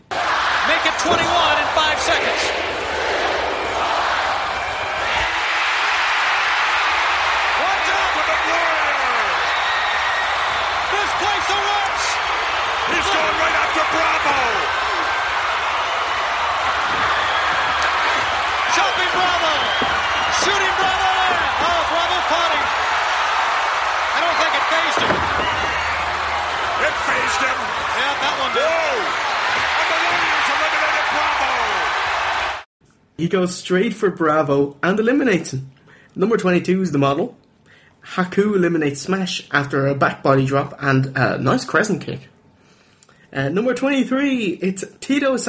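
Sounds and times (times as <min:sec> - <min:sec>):
wrestling arena crowd erupting in cheers: 0:00.0 - 0:32.7
speech: 0:33.2 - 0:37.4, 0:38.0 - 0:42.3, 0:43.3 - 0:45.4.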